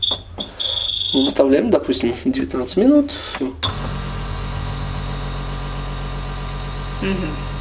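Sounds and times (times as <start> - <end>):
speech: 0.1 - 0.4, 1.1 - 4.0, 7.0 - 7.5
venous drainage massage device humming: 3.6 - 7.5.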